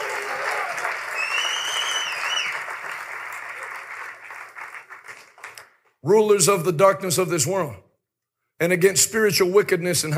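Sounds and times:
crowd clapping hands: 0.0s - 6.0s
whistle: 1.1s - 2.6s
speech: 6.0s - 7.8s, 8.6s - 10.1s.

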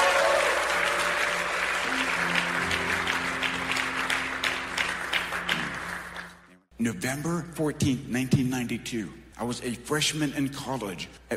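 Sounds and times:
audience applause: 0.0s - 6.5s
speech: 6.8s - 11.3s.

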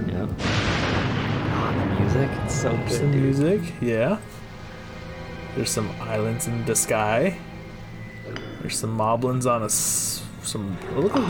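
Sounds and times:
speech: 0.2s - 0.6s, 2.1s - 4.4s, 5.6s - 7.5s, 8.6s - 11.2s
thunder in a video game trailer: 0.4s - 3.8s.

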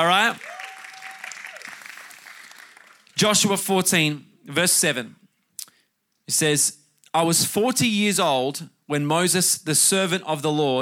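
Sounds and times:
speech: 0.0s - 0.5s, 3.2s - 5.2s, 6.3s - 10.8s
audience applause: 0.0s - 3.2s.

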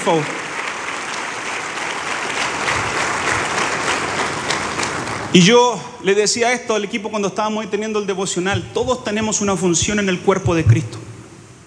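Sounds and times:
speech: 0.0s - 0.4s, 5.3s - 11.1s
loud sustained audience applause: 0.0s - 5.5s.

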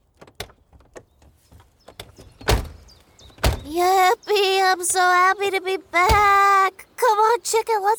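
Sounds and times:
car door opening with a click and rattling: 0.0s - 3.7s, 6.0s - 6.4s
car door slamming: 1.9s - 3.7s, 6.0s - 6.4s
speech: 3.7s - 7.9s.

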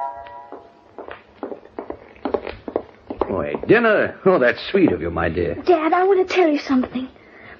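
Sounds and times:
footsteps going down steps: 0.1s - 5.3s
speech: 3.7s - 7.2s.

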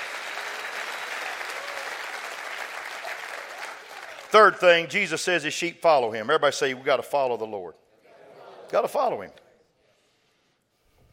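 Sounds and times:
audience clapping hands: 0.0s - 5.2s
speech: 4.3s - 7.8s, 8.7s - 9.4s.

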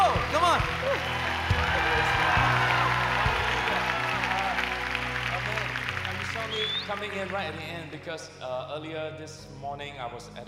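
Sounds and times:
audience applause: 0.0s - 7.7s
speech: 7.0s - 10.4s.

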